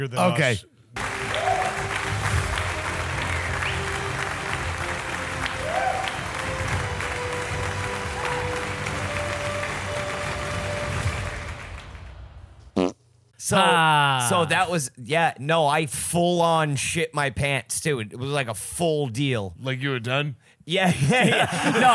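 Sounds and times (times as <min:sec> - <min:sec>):
laughter: 0:00.0 - 0:00.6, 0:20.8 - 0:21.9
speech: 0:00.0 - 0:00.7, 0:13.5 - 0:21.9
crowd applause sound effect: 0:00.2 - 0:12.2, 0:21.2 - 0:21.9.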